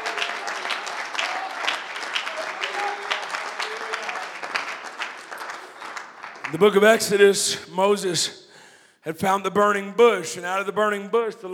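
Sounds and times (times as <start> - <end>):
audience clapping hands: 0.0 - 7.2
speech: 6.5 - 8.4, 9.0 - 11.5.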